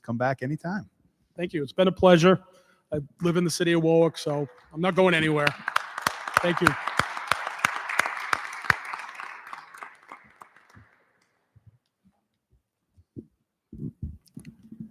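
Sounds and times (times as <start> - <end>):
speech: 0.0 - 5.8, 6.4 - 6.9
applause: 4.2 - 11.5.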